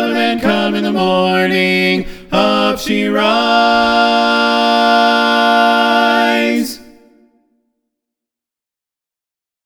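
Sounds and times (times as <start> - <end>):
TTBB male choir singing a sea shanty medley: 0.0 - 7.3.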